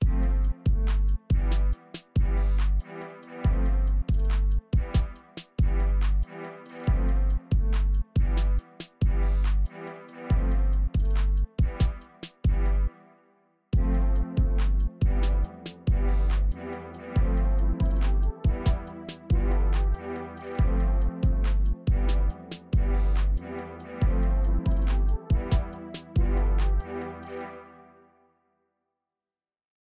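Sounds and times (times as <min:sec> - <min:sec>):
energetic trap music: 0:00.0 - 0:12.9, 0:13.8 - 0:27.6.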